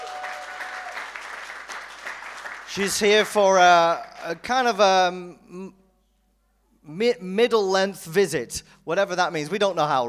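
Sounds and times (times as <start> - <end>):
church audience clapping to welcome someone back from Nepal: 0.0 - 4.4
speech: 2.7 - 5.8, 6.8 - 10.0.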